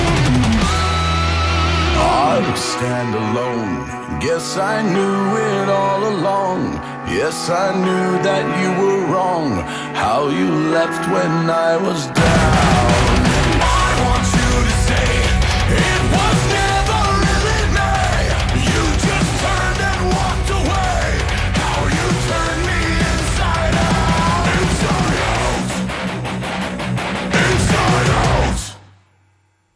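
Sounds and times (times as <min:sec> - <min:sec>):
loud dense metal song: 0:00.0 - 0:28.8
heavy distorted guitars: 0:00.0 - 0:29.0
man's shouted aggressive vocals: 0:01.9 - 0:04.0, 0:12.0 - 0:25.7
speech: 0:02.6 - 0:12.7
pounding drums: 0:12.2 - 0:26.1.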